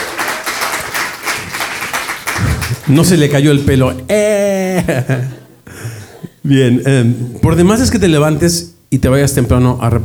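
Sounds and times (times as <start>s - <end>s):
audience applause for the producer of a family event: 0.0s - 3.8s
speech: 2.9s - 5.4s, 6.5s - 10.0s.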